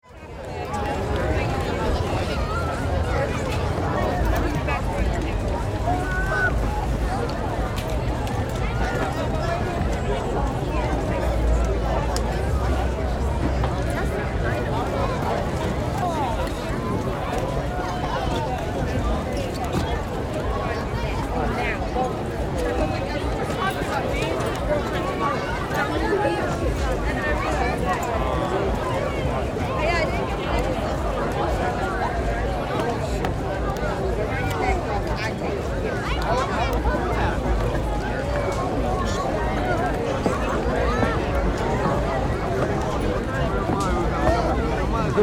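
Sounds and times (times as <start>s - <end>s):
outdoor crowd walla: 0.0s - 45.2s.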